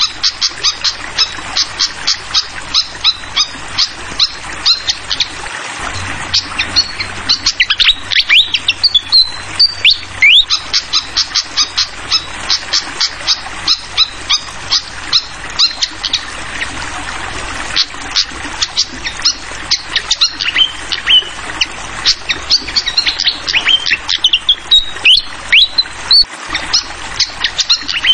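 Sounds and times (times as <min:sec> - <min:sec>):
trickling water: 0:00.0 - 0:28.1
fantail chirping: 0:04.7 - 0:16.7.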